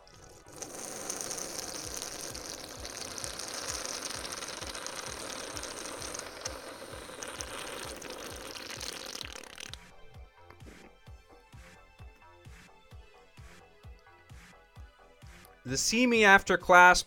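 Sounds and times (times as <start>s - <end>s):
long sip of beer: 0.0s - 9.9s
speech: 15.7s - 17.0s.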